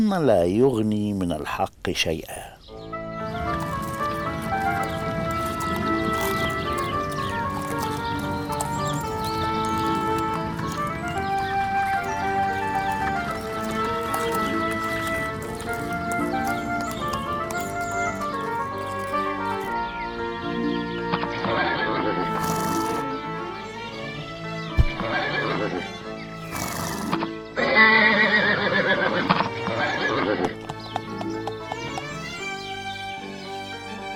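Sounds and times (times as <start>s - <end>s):
speech: 0.0s - 2.5s
hooves clip-clopping: 3.0s - 20.5s, 21.1s - 23.2s, 24.7s - 25.3s, 26.4s - 34.1s
horses neighing: 3.2s - 20.0s, 21.5s - 23.4s, 25.0s - 32.7s.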